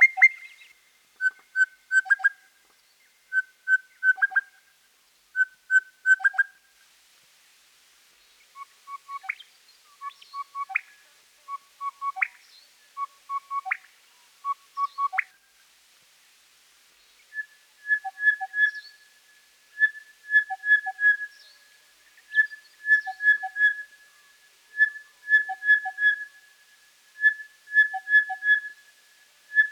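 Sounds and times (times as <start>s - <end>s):
crested bellbird singing: 0.0s - 2.5s, 3.3s - 4.6s, 5.4s - 6.6s, 8.5s - 15.4s, 17.2s - 29.7s.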